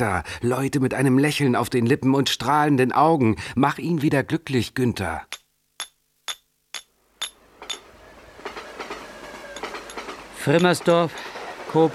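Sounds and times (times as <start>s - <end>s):
speech: 0.0s - 5.4s, 10.4s - 11.9s
train on rails clickety-clack: 7.6s - 11.9s.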